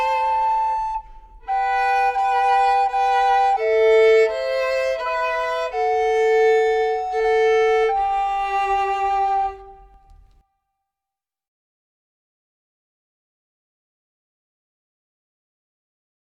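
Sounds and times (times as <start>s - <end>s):
trio playing: 0.0s - 10.4s.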